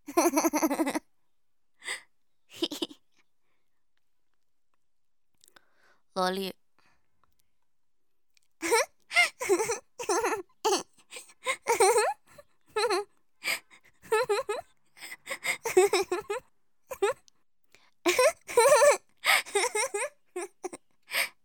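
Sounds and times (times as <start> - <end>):
woman laughing in game and anime style: 0.1 - 1.0, 2.5 - 3.0, 8.6 - 13.1, 14.0 - 17.2, 18.1 - 20.8.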